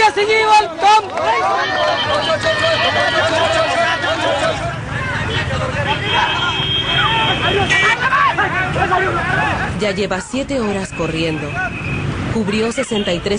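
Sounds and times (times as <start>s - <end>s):
crowd at a judo school near Bhubaneswar cheering and shouting: 0.0s - 10.0s
speech: 0.1s - 3.5s, 8.8s - 13.3s.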